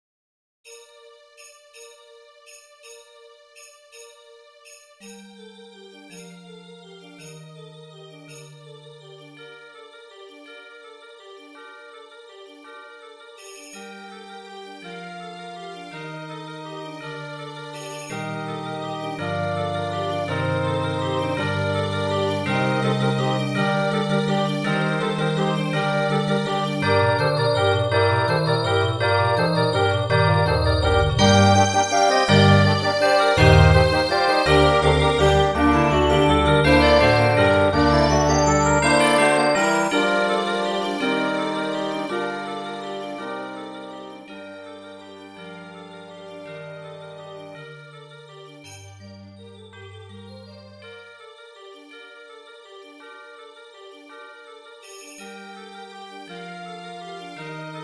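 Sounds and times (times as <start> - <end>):
MIDI music: 16.8 - 48.6.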